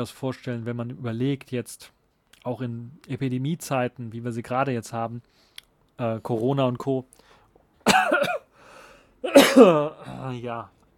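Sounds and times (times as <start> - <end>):
speech: 0.0 - 7.3, 9.2 - 10.8
harsh throaty cough: 7.8 - 8.5, 9.2 - 10.2.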